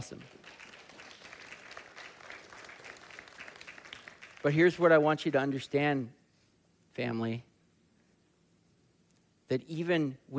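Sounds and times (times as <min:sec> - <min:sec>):
speech: 0:00.0 - 0:00.4, 0:04.4 - 0:06.2, 0:07.0 - 0:07.5, 0:09.5 - 0:10.3
audience applause: 0:00.3 - 0:04.8.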